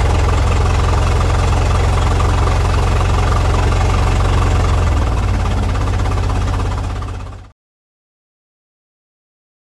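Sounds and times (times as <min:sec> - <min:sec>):
Ford Model T engine cranked over on starting handle: 0:00.0 - 0:07.5
Ford Model T fast idling and driving away, interior: 0:00.0 - 0:07.5.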